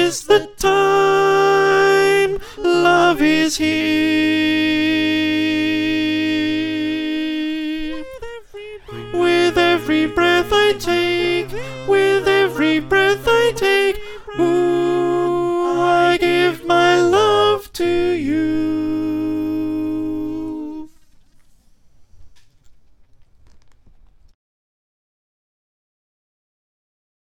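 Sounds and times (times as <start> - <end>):
alto choir singing: 0.0 - 21.0.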